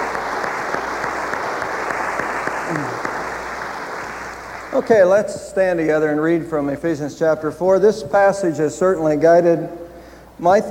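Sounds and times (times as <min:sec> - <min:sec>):
audience applause: 0:00.0 - 0:05.0
speech: 0:04.8 - 0:09.8, 0:10.4 - 0:10.6.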